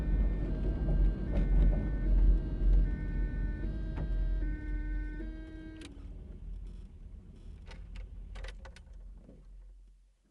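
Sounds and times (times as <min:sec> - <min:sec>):
Polonez 1500 car reversing, heard from interior: 0:00.0 - 0:05.9
siren: 0:00.0 - 0:05.9
Polonez 1500 car driving at medium speed, heard from interior: 0:00.0 - 0:06.7.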